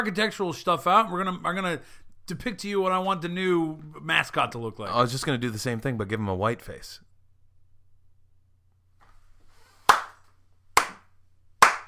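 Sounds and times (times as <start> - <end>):
speech: 0.0 - 7.1
sharp single hand claps: 9.8 - 11.8.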